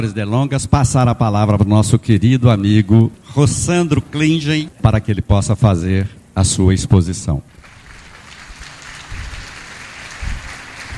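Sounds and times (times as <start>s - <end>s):
speech: 0.0s - 7.6s
audience applause welcoming a speaker: 7.5s - 10.9s.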